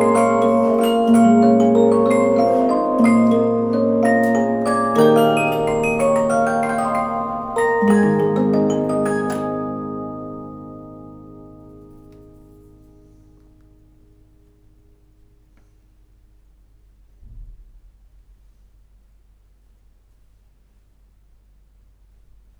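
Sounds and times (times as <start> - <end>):
music box with metal disc: 0.0 - 13.2.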